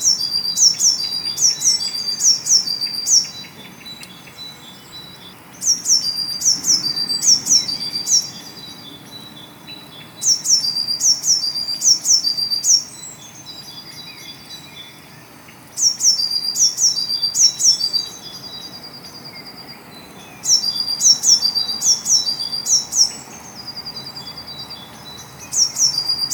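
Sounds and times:
Eurasian blue tit calls: 0:00.0 - 0:26.3.

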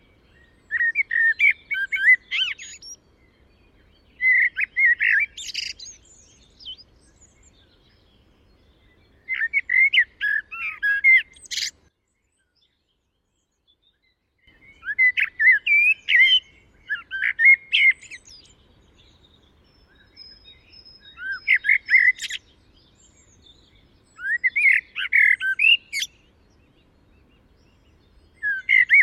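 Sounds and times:
common blackbird singing: 0:00.0 - 0:29.0.

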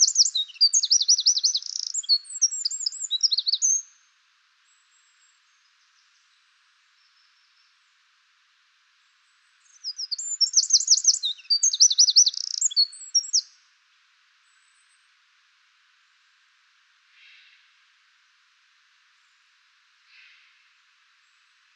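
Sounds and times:
Eurasian wren singing: 0:00.0 - 0:03.9, 0:09.6 - 0:13.5.

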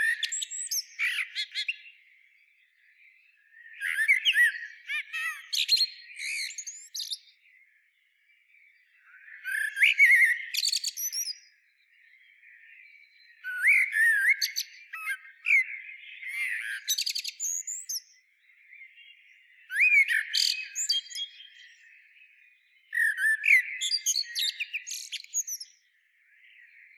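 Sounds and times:
Eurasian blackbird song of whistles and twittering: 0:00.0 - 0:02.0, 0:03.6 - 0:07.3, 0:09.0 - 0:11.6, 0:13.2 - 0:22.1, 0:22.9 - 0:25.9
other birds: 0:00.0 - 0:26.9.

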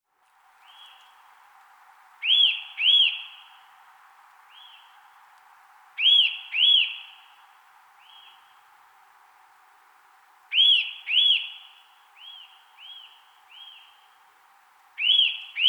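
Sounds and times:
Eurasian nuthatch Sitta europaea loud arched whistled call: 0:02.2 - 0:03.5, 0:06.0 - 0:07.2, 0:10.5 - 0:14.0, 0:15.0 - 0:15.6.

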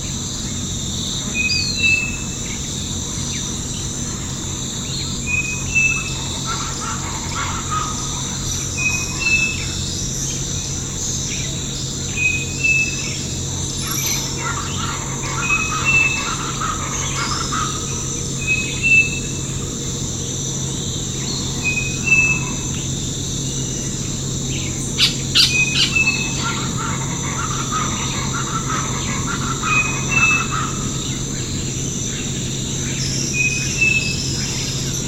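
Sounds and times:
continuous high insect hum: 0:00.0 - 0:35.0
bird whistles: 0:25.0 - 0:26.6.

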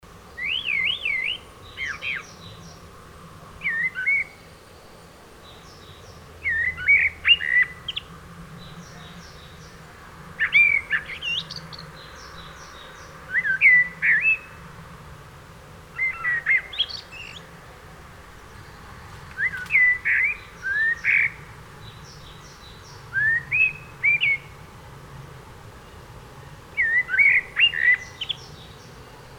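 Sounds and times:
Eurasian blackbird singing: 0:00.4 - 0:02.9, 0:03.6 - 0:09.8, 0:10.4 - 0:14.6, 0:16.0 - 0:17.6, 0:18.4 - 0:24.6, 0:26.7 - 0:29.2.

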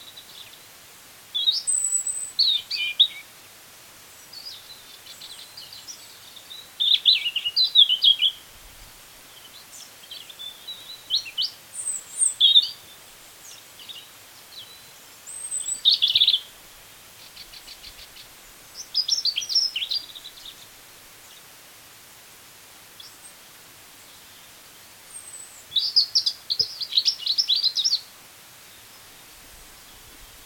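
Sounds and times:
European robin singing: 0:01.4 - 0:03.3, 0:04.1 - 0:08.5, 0:09.3 - 0:16.5, 0:17.2 - 0:21.5, 0:24.0 - 0:28.1.

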